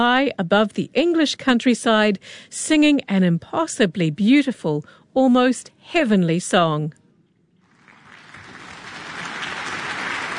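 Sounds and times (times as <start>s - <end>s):
speech: 0.0s - 7.0s
concert audience applause: 7.7s - 10.3s.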